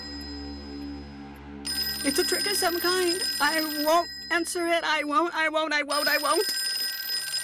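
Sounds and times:
telephone bell ringing: 1.7 - 7.4
speech: 2.0 - 6.6.

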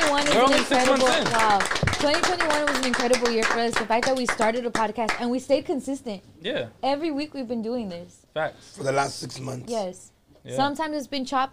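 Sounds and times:
clapping: 0.0 - 5.3
speech: 0.2 - 11.5.

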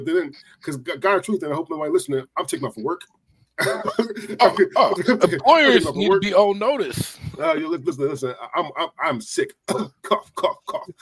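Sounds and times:
speech: 0.0 - 11.0
cough: 3.6 - 4.1, 9.7 - 11.0
laughter: 3.6 - 6.2.

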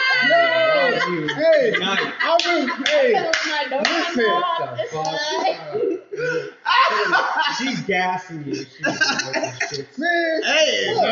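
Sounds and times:
laughter: 0.0 - 11.1
speech: 1.9 - 11.1
hand clapping: 2.4 - 4.2.

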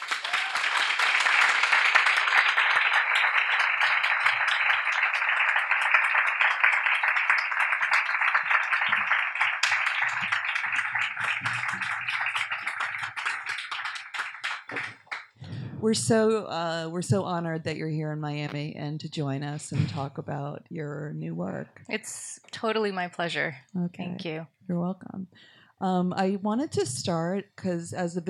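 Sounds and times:
audience applause welcoming guests at a Miami talk event: 0.0 - 15.6
speech: 15.8 - 28.2.

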